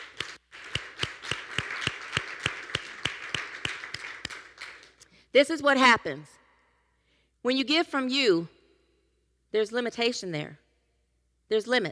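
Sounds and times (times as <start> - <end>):
audience clapping in rhythm: 0.0 - 5.2
speech: 5.3 - 6.4, 7.4 - 8.6, 9.5 - 10.6, 11.5 - 11.8.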